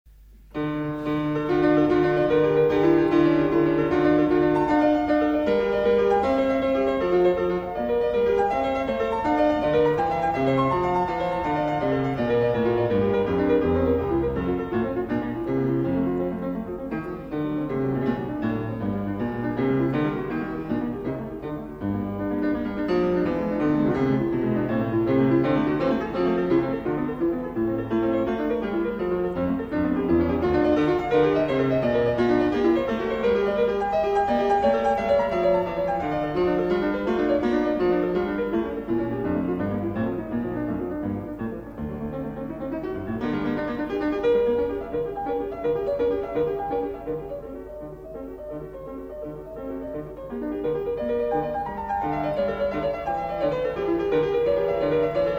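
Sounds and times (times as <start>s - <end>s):
prelude in D minor on clavier: 0.6s - 55.3s.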